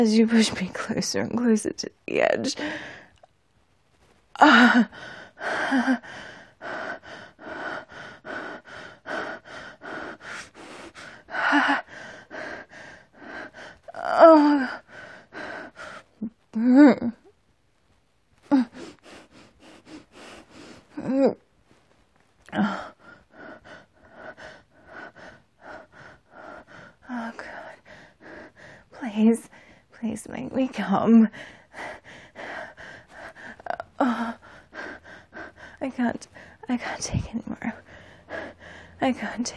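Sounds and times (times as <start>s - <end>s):
speech: 0.0s - 3.0s, 4.4s - 6.9s, 14.1s - 14.8s, 16.2s - 17.2s, 21.0s - 21.4s, 22.5s - 22.9s, 29.2s - 31.9s, 35.8s - 37.9s, 39.0s - 39.5s
quickened breathing and gasps: 4.9s - 13.9s, 18.7s - 21.0s, 22.5s - 29.9s, 31.3s - 37.0s, 37.7s - 39.0s.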